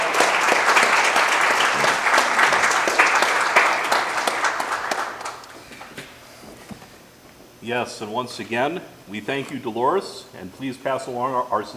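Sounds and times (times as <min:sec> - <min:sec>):
audience applause: 0:00.0 - 0:05.8
speech: 0:07.7 - 0:11.7.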